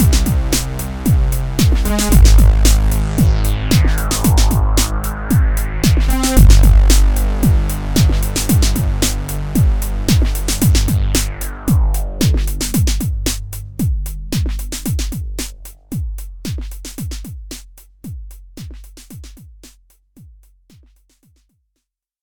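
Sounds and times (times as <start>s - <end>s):
monophonic synthesizer oscillator chords: 0.0s - 13.4s.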